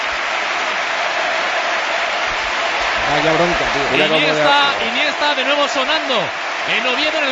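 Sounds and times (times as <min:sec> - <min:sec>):
stadium crowd applauding: 0:00.0 - 0:07.3
speech: 0:03.1 - 0:07.3.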